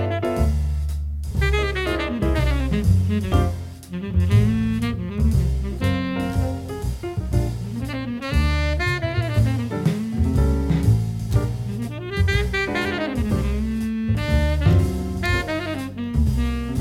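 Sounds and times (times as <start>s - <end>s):
walking double bass line: 0.0s - 16.7s.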